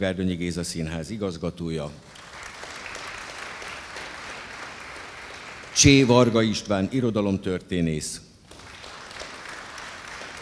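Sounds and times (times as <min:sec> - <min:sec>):
speech: 0:00.0 - 0:02.2, 0:05.8 - 0:08.3
audience applause: 0:02.1 - 0:06.4, 0:08.5 - 0:10.3.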